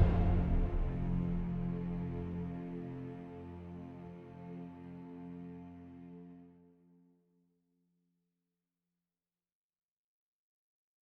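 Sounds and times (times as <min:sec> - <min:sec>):
music: 0:00.0 - 0:08.2.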